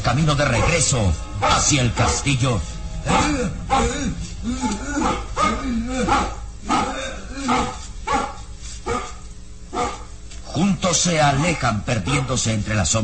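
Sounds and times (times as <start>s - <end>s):
speech: 0.1s - 7.8s, 10.6s - 13.0s
mastiff barking: 5.0s - 10.1s.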